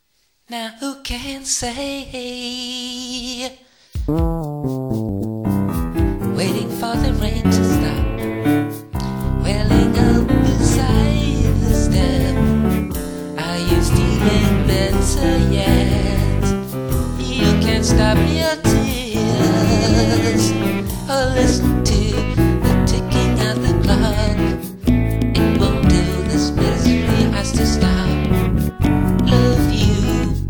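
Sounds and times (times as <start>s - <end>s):
song: 4.1s - 30.4s.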